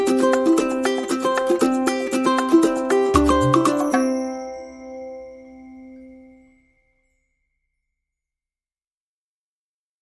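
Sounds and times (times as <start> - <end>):
ukulele: 0.0 - 6.2
percussion: 0.0 - 7.8.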